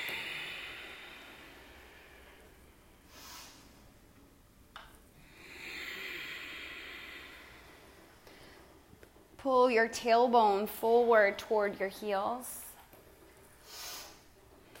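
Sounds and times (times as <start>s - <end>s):
slow deep breathing through the nose during yoga practice: 0.0s - 4.0s, 5.2s - 9.0s, 13.6s - 14.3s
speech: 9.4s - 12.6s.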